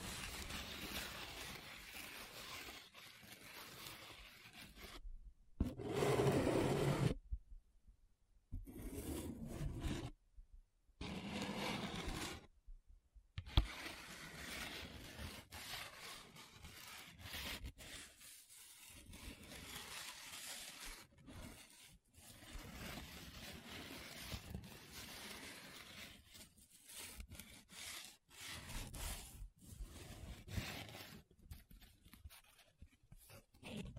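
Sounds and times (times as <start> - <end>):
paper being rubbed, scratched and traced: 0.0 - 5.0, 5.6 - 7.2, 8.6 - 10.2, 11.0 - 12.5, 13.5 - 33.9.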